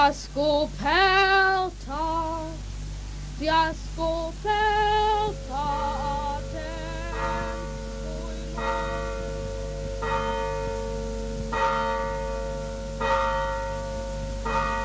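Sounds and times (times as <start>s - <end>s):
speech: 0.0s - 2.2s, 3.4s - 6.0s
church bell striking the hour: 5.2s - 14.8s.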